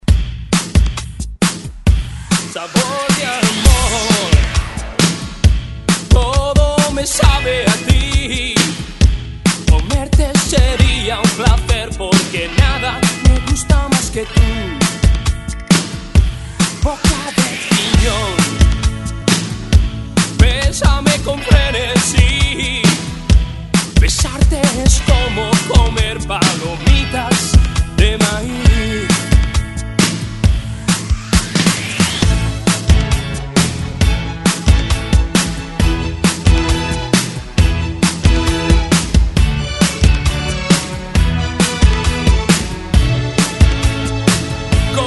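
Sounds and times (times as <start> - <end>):
drum beat: 0.0 - 45.0.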